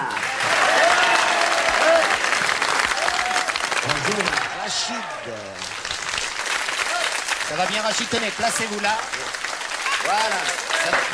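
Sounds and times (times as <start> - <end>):
faint whistles or cheers: 0.0 - 5.2
audience applause: 0.0 - 11.1
speech: 4.8 - 5.7, 7.5 - 9.4, 10.0 - 11.1.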